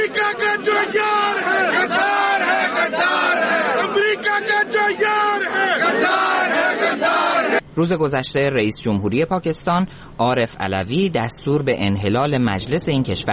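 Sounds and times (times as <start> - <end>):
protesters chanting political slogans: 0.0 - 7.6
speech: 7.8 - 13.3.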